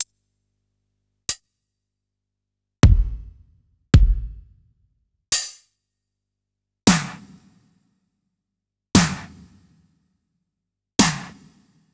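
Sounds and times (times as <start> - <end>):
electro drum kit: 2.8 - 3.4, 4.0 - 4.5.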